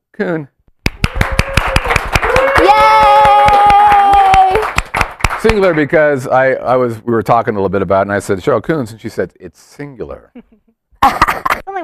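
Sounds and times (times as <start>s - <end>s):
speech: 0.2s - 0.6s, 5.4s - 11.8s
audience clapping hands: 0.8s - 6.0s.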